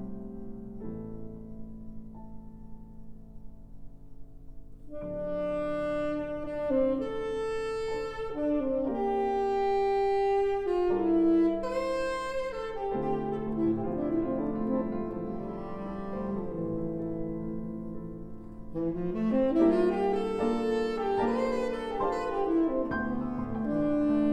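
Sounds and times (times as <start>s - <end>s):
saxophone improvising a hymn: 4.9s - 17.1s, 18.8s - 24.3s.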